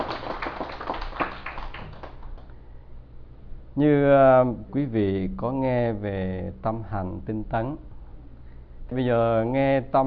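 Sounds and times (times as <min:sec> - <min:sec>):
audience applauding at a Buddhist dharma talk: 0:00.0 - 0:02.5
speech: 0:03.8 - 0:07.9, 0:08.9 - 0:10.0.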